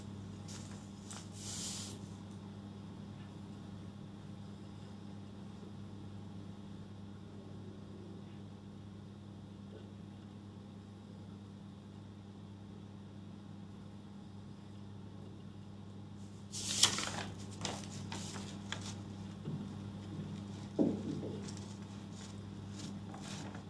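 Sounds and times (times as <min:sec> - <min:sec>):
low steady hum: 0:00.0 - 0:23.6
crisp rustles of paper: 0:00.4 - 0:02.1, 0:16.5 - 0:19.1, 0:21.4 - 0:23.6.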